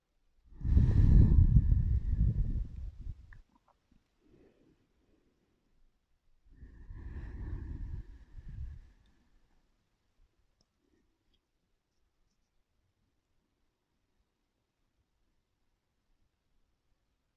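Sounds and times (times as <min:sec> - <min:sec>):
slow breathing during a yoga forward bend: 0:00.5 - 0:03.2, 0:04.2 - 0:05.6, 0:06.5 - 0:09.6.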